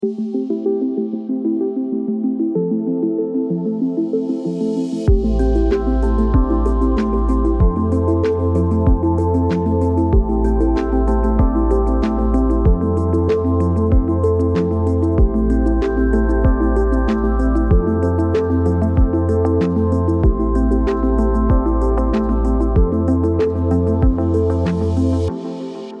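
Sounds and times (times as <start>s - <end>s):
dreamy synthwave music: 0.0s - 25.9s.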